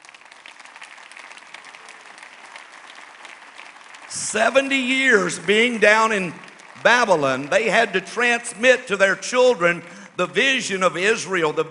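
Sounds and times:
audience applause welcoming children: 0.0s - 8.5s
speech: 4.1s - 11.6s.

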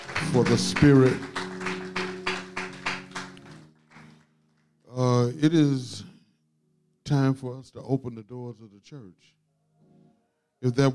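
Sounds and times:
audience clapping hands: 0.0s - 5.0s
speech: 0.3s - 1.3s, 5.0s - 6.1s, 7.1s - 9.4s, 10.6s - 10.9s.

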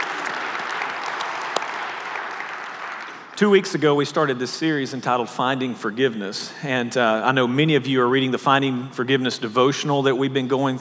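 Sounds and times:
live audience clapping in a church service room: 0.0s - 4.3s
speech: 3.4s - 10.7s.

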